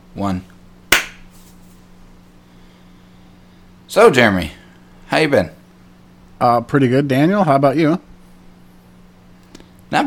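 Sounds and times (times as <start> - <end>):
speech: 0.2 - 0.6, 3.9 - 5.6, 6.4 - 8.1
single hand clap: 0.9 - 1.3.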